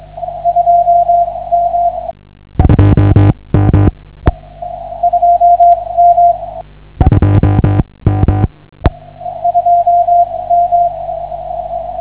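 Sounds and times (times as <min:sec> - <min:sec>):
CW Morse code beeps: 0:00.3 - 0:03.2, 0:05.0 - 0:08.5, 0:09.3 - 0:12.0.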